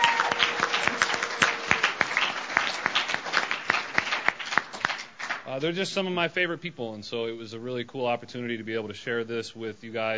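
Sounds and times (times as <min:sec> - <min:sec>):
crowd applause: 0:00.0 - 0:05.4
speech: 0:05.5 - 0:10.1.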